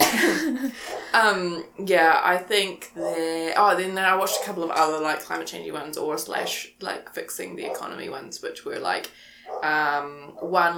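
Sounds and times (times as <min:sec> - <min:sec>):
person coughing: 0:00.0 - 0:01.1
speech: 0:00.7 - 0:10.7.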